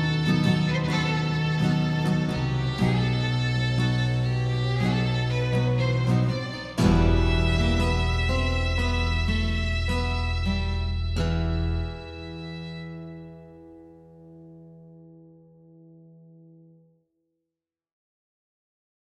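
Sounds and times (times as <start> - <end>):
epic orchestral cover: 0.0 - 13.4.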